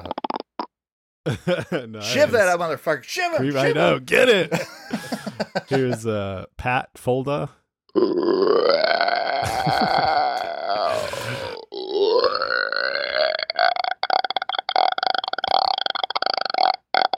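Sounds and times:
person burping: 0:00.0 - 0:00.7, 0:07.9 - 0:17.1
laughter: 0:01.3 - 0:02.6, 0:03.5 - 0:06.2, 0:09.4 - 0:10.8
speech: 0:01.3 - 0:08.2.

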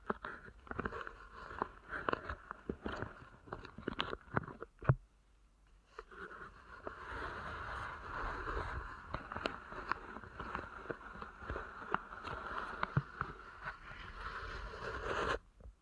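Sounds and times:
deep ear canal massage rubbing: 0:00.0 - 0:04.8, 0:05.9 - 0:15.4.

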